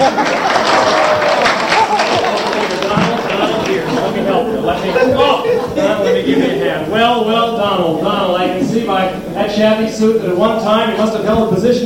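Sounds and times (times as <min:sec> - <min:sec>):
game show studio audience applause welcoming a contestant: 0:00.0 - 0:06.6
laughter: 0:00.0 - 0:09.5
speech: 0:09.6 - 0:11.8.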